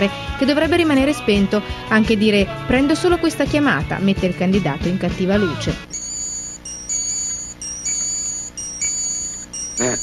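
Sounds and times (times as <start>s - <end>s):
speech: 0.0s - 6.0s
Japanese alarm clock beeping: 5.9s - 10.0s.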